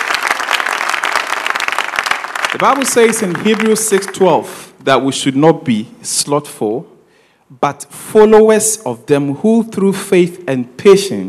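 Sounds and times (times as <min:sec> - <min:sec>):
audience clapping: 0:00.0 - 0:04.4
speech: 0:02.5 - 0:11.2.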